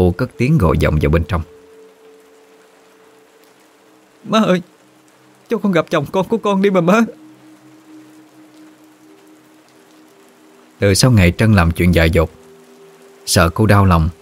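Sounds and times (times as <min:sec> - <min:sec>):
speech: 0:00.0 - 0:01.5, 0:04.2 - 0:04.7, 0:05.5 - 0:07.2, 0:10.8 - 0:12.4, 0:13.3 - 0:14.2
rain falling: 0:00.0 - 0:14.2.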